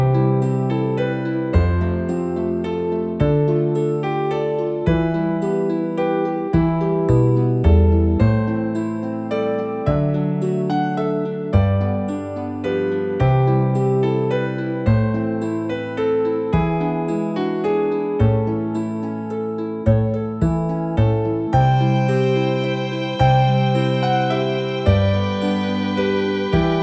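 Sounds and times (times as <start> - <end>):
celtic harp: 0.0 - 26.8
piano: 0.0 - 26.8
violin: 21.1 - 26.8.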